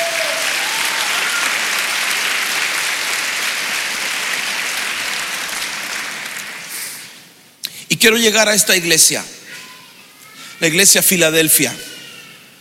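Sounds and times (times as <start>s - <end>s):
audience clapping: 0.0s - 7.3s
speech: 8.0s - 9.4s, 10.6s - 11.9s.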